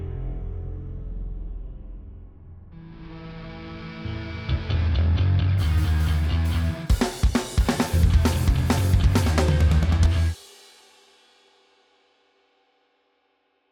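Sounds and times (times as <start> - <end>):
punk bass guitar: 2.8 - 10.4.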